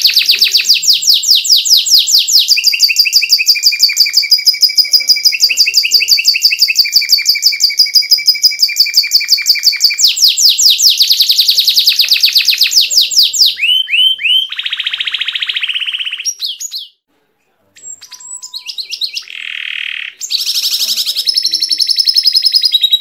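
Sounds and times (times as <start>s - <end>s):
champion canary singing: 0.0s - 17.0s, 17.7s - 22.9s.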